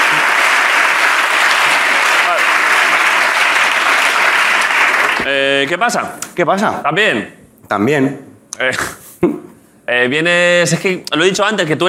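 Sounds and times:
audience applause: 0.0s - 5.3s
speech: 5.3s - 11.8s.

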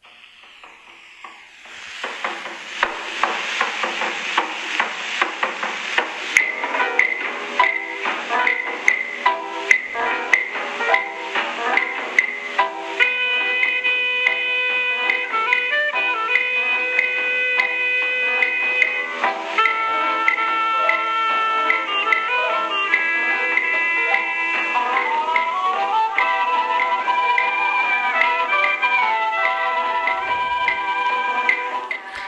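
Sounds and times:
busy crackling percussion: 0.0s - 32.2s
Cuban jazz-style instrumental tune: 1.0s - 32.2s.

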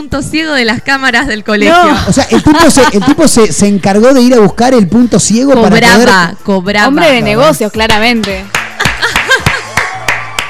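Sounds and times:
speech: 0.0s - 8.6s
laughter: 1.9s - 3.8s, 8.7s - 9.9s
hand clapping: 8.2s - 10.4s.

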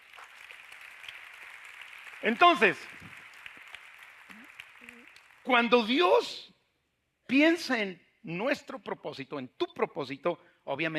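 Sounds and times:
audience applauding: 0.0s - 5.8s
speech: 2.2s - 3.0s, 5.5s - 6.5s, 7.3s - 10.9s.

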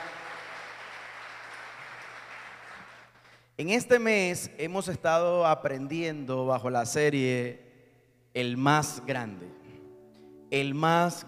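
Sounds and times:
church audience applause: 0.0s - 3.4s
speech: 3.6s - 7.6s, 8.4s - 9.6s, 10.5s - 11.2s.

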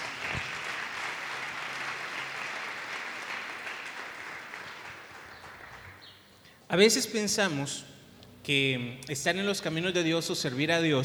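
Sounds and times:
audience applause: 0.0s - 6.0s
speech: 6.7s - 7.9s, 8.5s - 11.0s.

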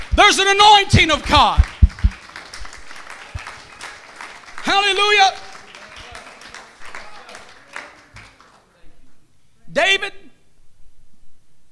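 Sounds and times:
audience clapping: 0.0s - 8.7s
speech: 0.3s - 1.7s, 4.7s - 5.4s, 9.8s - 10.2s.

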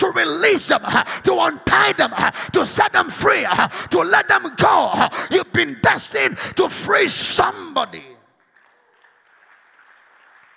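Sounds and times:
speech: 0.0s - 8.2s
audience clapping: 8.2s - 10.5s.

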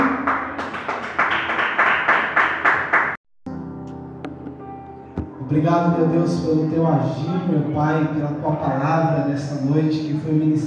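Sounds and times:
audience clapping: 0.0s - 3.2s
speech: 5.5s - 10.6s.

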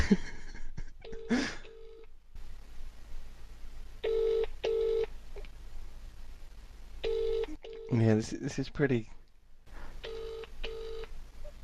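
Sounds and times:
noise: 0.0s - 11.6s
speech: 0.1s - 0.3s, 1.3s - 1.6s, 8.2s - 9.2s
ringback tones heard through a phone line: 4.1s - 5.1s, 7.0s - 7.9s, 10.1s - 11.1s.

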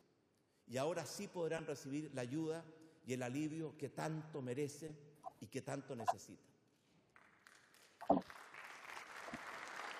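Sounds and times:
speech: 0.7s - 6.5s
audience applause: 8.2s - 9.9s.

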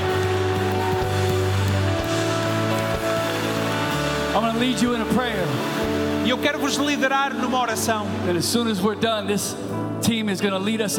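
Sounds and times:
audience applause: 0.0s - 7.0s
speech: 4.4s - 10.9s.

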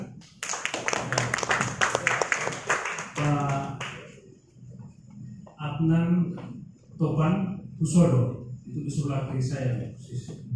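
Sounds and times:
audience clapping: 0.0s - 4.2s
speech: 5.8s - 6.4s, 7.0s - 10.5s.

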